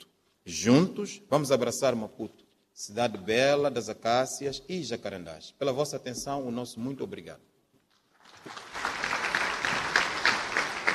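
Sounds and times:
speech: 0:00.5 - 0:07.5
audience applause: 0:08.2 - 0:10.9.

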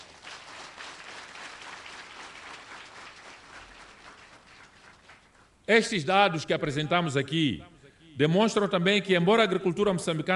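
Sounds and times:
audience applause: 0:00.0 - 0:05.5
speech: 0:05.7 - 0:10.3.

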